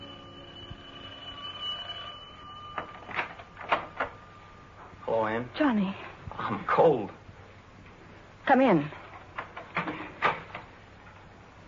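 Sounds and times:
doorbell ringing: 0.0s - 5.0s
speech: 5.2s - 7.2s, 8.5s - 9.0s.

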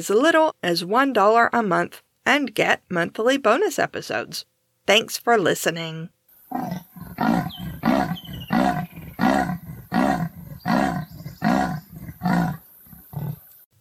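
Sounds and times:
speech: 0.0s - 7.4s
marsupial lion roar: 6.5s - 13.5s.

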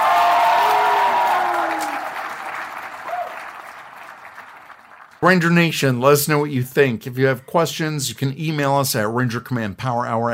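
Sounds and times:
audience applause: 0.0s - 5.2s
speech: 5.2s - 10.3s.

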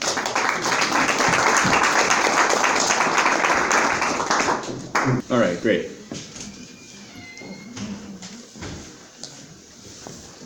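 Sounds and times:
audience applause: 0.0s - 5.2s
speech: 5.1s - 6.3s.

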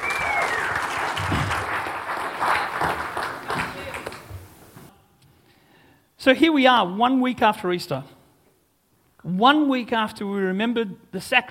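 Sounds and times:
crowd cheers: 0.0s - 4.1s
crowd applauding: 0.0s - 4.6s
speech: 6.2s - 8.2s, 9.2s - 11.4s.

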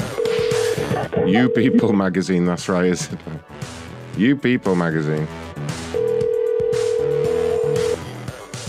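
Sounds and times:
cell phone ringing with an electronic tune: 0.1s - 2.0s, 5.9s - 8.1s
speech: 1.2s - 5.4s.

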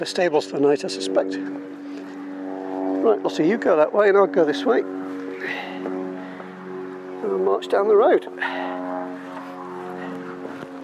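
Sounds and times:
speech: 0.0s - 2.0s, 3.0s - 6.0s, 7.4s - 8.8s
aeroplane engine droning overhead: 0.0s - 10.8s.

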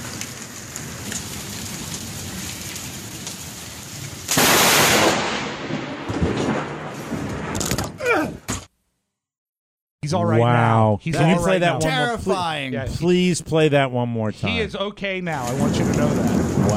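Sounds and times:
heavy rain: 0.0s - 7.4s, 15.3s - 16.7s
close lightning strike thunderclap: 0.0s - 8.0s, 15.3s - 16.7s
speech: 10.1s - 16.7s.

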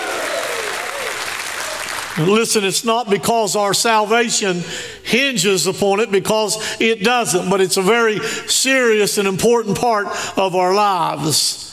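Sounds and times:
audience hand clapping: 0.0s - 2.3s
speech: 2.2s - 11.7s.

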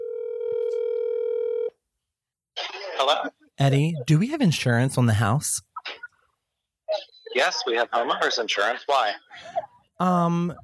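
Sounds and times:
telephone dial tone: 0.0s - 1.7s
speech: 3.0s - 6.0s, 7.4s - 10.6s.

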